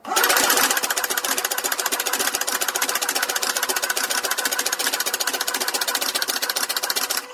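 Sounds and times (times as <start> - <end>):
card-dealing machine dealing out a 52-card deck: 0.0 - 7.3.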